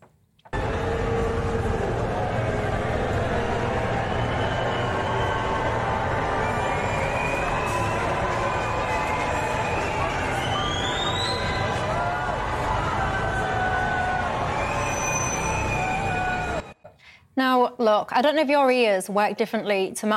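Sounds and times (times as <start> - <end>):
large crowd cheering: 0.5 - 16.8
shrill whistles: 4.0 - 11.9, 14.5 - 16.9
speech: 17.9 - 20.1.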